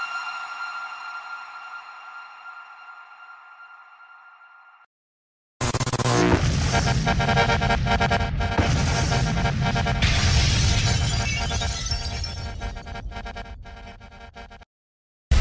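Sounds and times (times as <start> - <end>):
DJ sound effects: 5.6 - 14.7.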